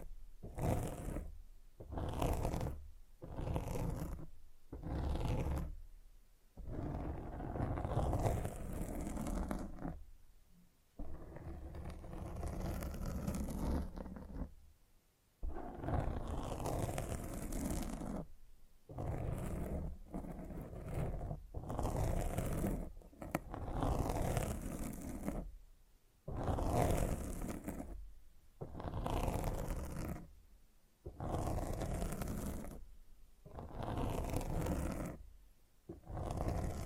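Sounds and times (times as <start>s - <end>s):
microphone scratching: 0.0s - 5.8s, 6.6s - 10.0s, 11.0s - 14.5s, 15.4s - 18.3s, 18.9s - 25.5s, 26.3s - 28.0s, 28.6s - 30.3s, 31.1s - 32.8s, 33.4s - 35.3s, 35.9s - 36.8s.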